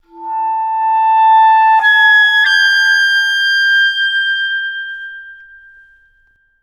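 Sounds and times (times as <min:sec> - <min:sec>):
music: 0:00.0 - 0:06.6.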